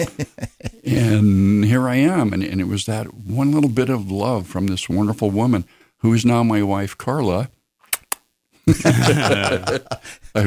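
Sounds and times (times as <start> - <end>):
laughter: 0.0 - 1.0, 8.7 - 10.4
speech: 0.0 - 7.6, 8.7 - 10.4
lip clicking: 7.8 - 8.3.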